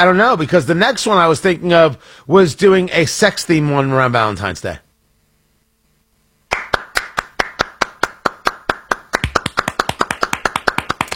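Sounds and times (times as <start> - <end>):
speech: 0.0 - 4.8
hand clapping: 6.5 - 11.1.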